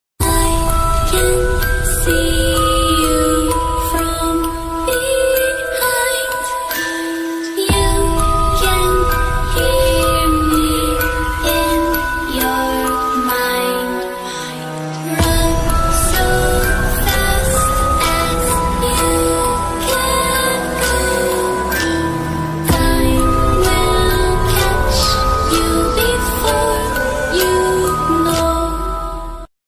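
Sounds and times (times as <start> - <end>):
horror ringtone: 0.2 - 29.5.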